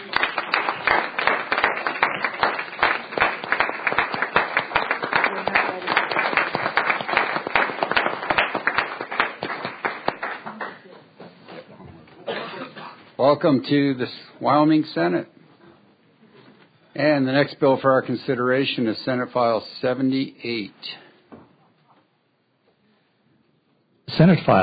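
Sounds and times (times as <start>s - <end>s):
audience applause: 0.0s - 10.9s
speech: 13.2s - 15.3s, 17.0s - 21.0s, 24.2s - 24.6s.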